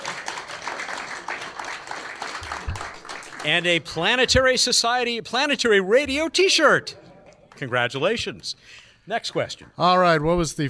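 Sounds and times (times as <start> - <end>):
audience applause: 0.0 - 3.6
speech: 3.4 - 7.0, 7.6 - 10.6.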